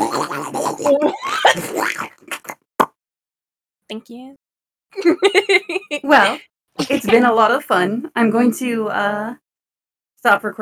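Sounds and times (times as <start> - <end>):
speech: 0.8 - 1.7, 4.0 - 9.4, 10.2 - 10.5
laughter: 5.0 - 7.4
person coughing: 6.2 - 7.3.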